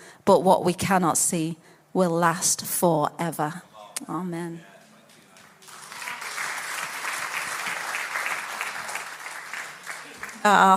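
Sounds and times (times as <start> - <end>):
speech: 0.3 - 4.7, 10.4 - 10.7
crowd applauding: 4.8 - 10.7.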